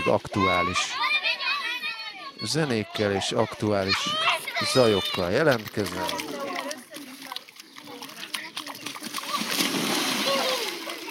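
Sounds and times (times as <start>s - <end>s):
speech: 0.1s - 1.2s, 2.4s - 6.3s
water splashing at the Danube riverbank during a heat dome: 3.5s - 11.0s.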